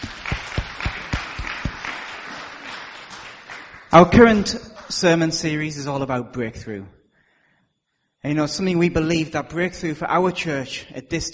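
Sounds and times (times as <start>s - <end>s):
audience round of applause: 0.0s - 5.0s
speech: 3.9s - 7.0s, 8.2s - 11.3s.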